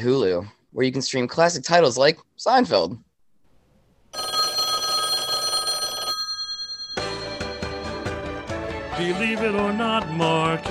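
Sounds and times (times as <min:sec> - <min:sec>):
speech: 0:00.0 - 0:03.1, 0:09.0 - 0:10.7
telephone bell ringing: 0:04.1 - 0:08.6.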